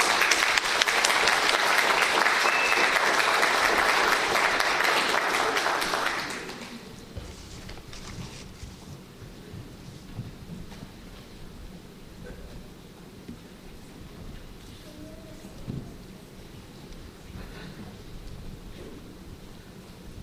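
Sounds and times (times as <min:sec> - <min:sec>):
applause for church staff: 0:00.0 - 0:07.0.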